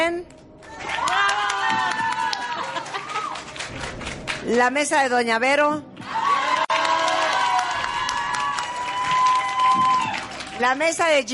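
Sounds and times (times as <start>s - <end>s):
voices whooping and cheering: 0.6s - 3.5s, 6.0s - 10.6s
audience clapping: 0.6s - 4.6s, 6.0s - 11.3s
speech: 4.5s - 5.9s, 10.6s - 11.3s.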